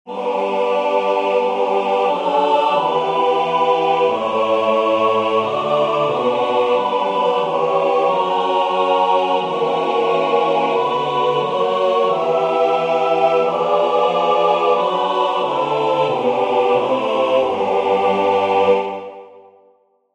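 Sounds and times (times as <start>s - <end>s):
double chant in G major: 0.1s - 19.8s.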